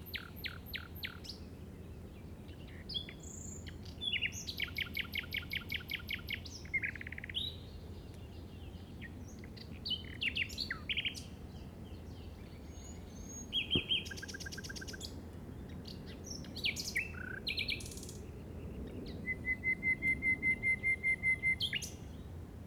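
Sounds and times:
common nightingale singing: 0:00.0 - 0:01.4, 0:02.7 - 0:07.7, 0:12.0 - 0:22.2.

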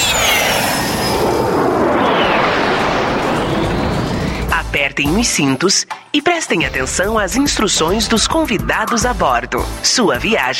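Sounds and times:
jet airplane taking off as a radio advert effect: 0:00.0 - 0:04.7
speech: 0:05.0 - 0:10.5.

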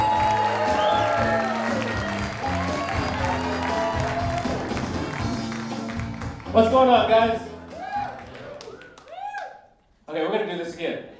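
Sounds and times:
audience applause at a comedy show welcoming a comedian: 0:00.0 - 0:06.8, 0:07.5 - 0:09.6
speech: 0:06.6 - 0:07.5.

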